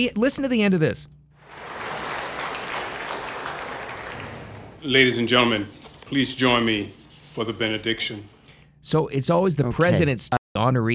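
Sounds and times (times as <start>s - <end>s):
speech: 0.0s - 1.2s, 4.8s - 10.9s
long audience applause at Medal of Honor ceremony: 1.4s - 4.8s.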